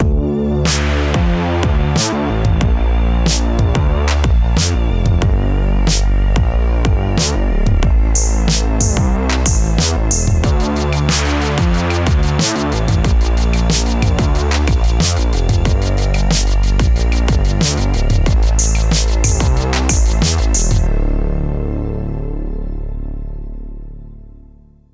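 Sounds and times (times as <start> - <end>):
bass: 0.0 - 24.9.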